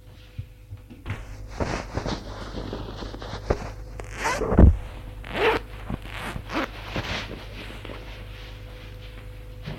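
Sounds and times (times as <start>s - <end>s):
fabric rustling: 1.2s - 7.5s
zipper opening: 3.5s - 7.2s.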